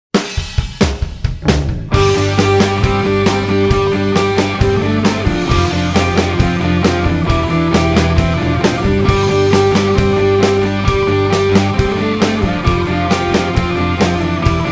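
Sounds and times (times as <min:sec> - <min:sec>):
Britpop music: 0:00.2 - 0:14.7.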